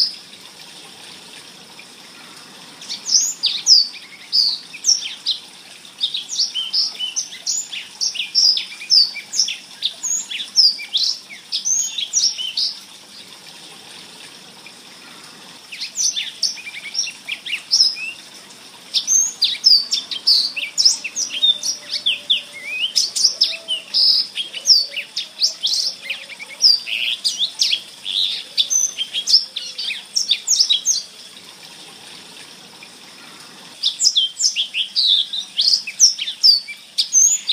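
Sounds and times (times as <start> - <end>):
blackthroat bird singing: 2.2 - 5.4, 6.0 - 12.8, 15.0 - 18.3, 18.9 - 31.3, 33.2 - 37.5.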